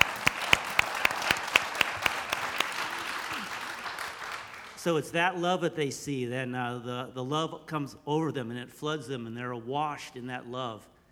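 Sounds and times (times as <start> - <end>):
audience applause: 0.0 - 4.8
speech: 4.8 - 10.9.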